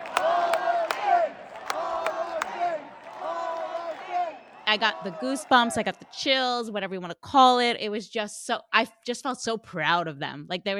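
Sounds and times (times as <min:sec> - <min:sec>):
concert crowd chanting: 0:00.0 - 0:06.3
speech: 0:04.7 - 0:10.7.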